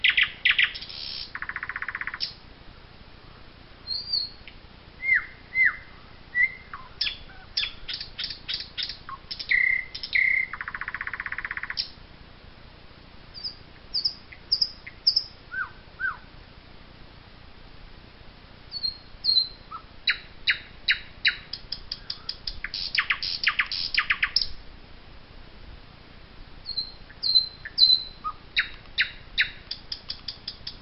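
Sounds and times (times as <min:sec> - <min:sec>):
nightingale singing: 0:00.0 - 0:02.4, 0:03.8 - 0:12.0, 0:13.3 - 0:16.4, 0:18.7 - 0:24.6, 0:26.6 - 0:30.7.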